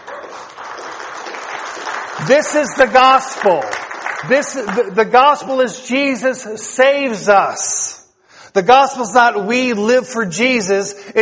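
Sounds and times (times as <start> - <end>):
audience applause: 0.0 - 4.9
speech: 2.2 - 7.8, 8.5 - 11.1.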